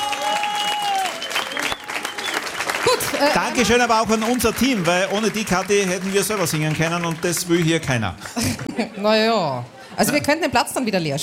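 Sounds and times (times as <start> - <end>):
applause: 0.0 - 8.7
speech: 3.2 - 11.2.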